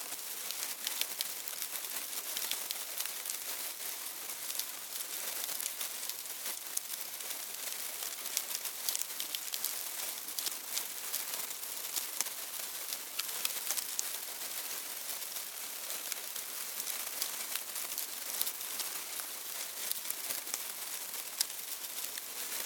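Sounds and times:
termites eating in a hive: 0:00.2 - 0:22.6
termites moving in a hive: 0:00.2 - 0:22.6.

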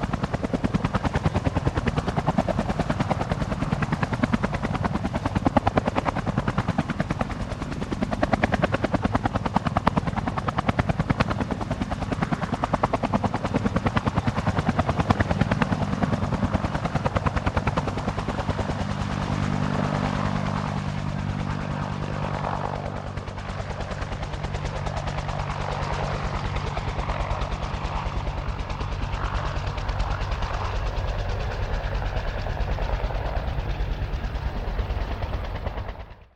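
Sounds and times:
1967 Bell UH-1 Iroquois helicopter passing: 0:00.0 - 0:36.3.

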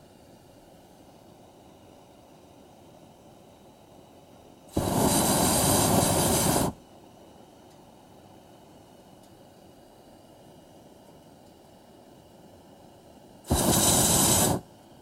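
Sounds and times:
hot air balloon burners during descent: 0:04.7 - 0:06.8, 0:13.4 - 0:15.0.

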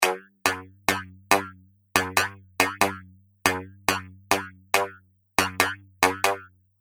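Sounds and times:
robot-style boogie loop at 140 bpm: 0:00.0 - 0:06.4.

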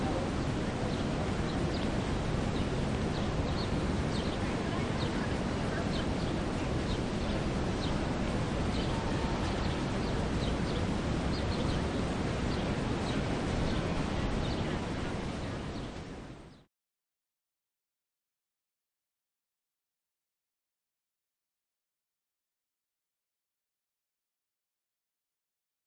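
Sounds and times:
city park open plaza ambience: 0:00.0 - 0:16.6.

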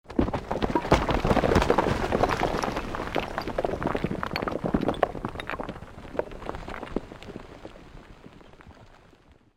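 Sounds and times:
created medium rockslide: 0:00.1 - 0:09.5.

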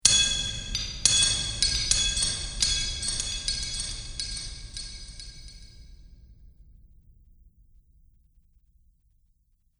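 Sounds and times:
metal chains: 0:00.0 - 0:05.7
magic ambience: 0:00.1 - 0:05.7.

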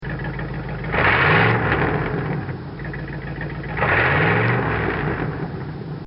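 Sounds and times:
motor revving: 0:00.9 - 0:02.4, 0:03.7 - 0:05.5.

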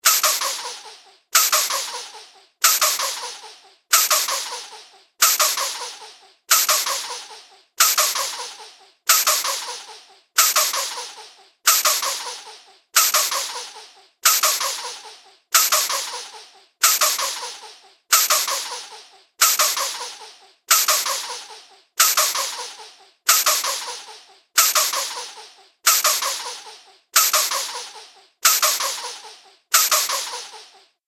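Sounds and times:
cartoon repetitive pumping: 0:00.0 - 0:30.9.

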